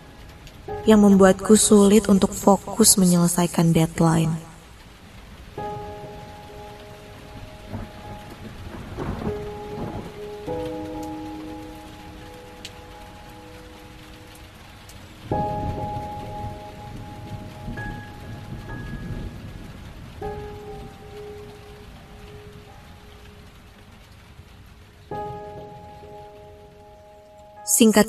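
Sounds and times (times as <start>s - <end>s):
deep thunder rumbles: 0.0s - 27.1s
heavy rain at night outside an office: 0.0s - 28.0s
soft sustained musical tones: 0.0s - 28.0s
speech: 0.8s - 4.5s, 27.8s - 28.0s.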